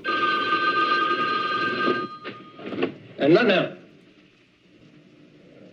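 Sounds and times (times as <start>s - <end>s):
telephone bell ringing: 0.0s - 2.8s
speech: 3.2s - 3.8s.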